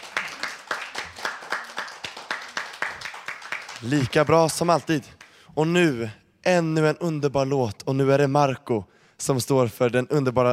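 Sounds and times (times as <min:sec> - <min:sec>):
audience applause: 0:00.0 - 0:04.3
speech: 0:03.8 - 0:10.5.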